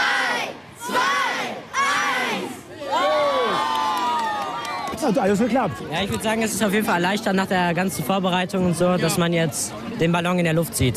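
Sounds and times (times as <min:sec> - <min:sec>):
large crowd of children cheering at a weather balloon launch: 0:00.8 - 0:05.0
speech: 0:05.1 - 0:10.9.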